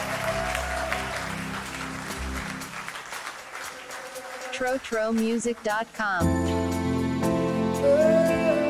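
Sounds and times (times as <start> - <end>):
church congregation clapping hands: 0.0 - 6.0
speech: 4.6 - 6.6, 7.8 - 8.5.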